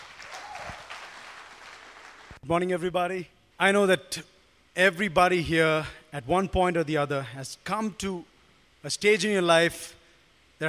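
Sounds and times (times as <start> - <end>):
church congregation applauding: 0.0 - 2.4
speech: 2.4 - 10.0.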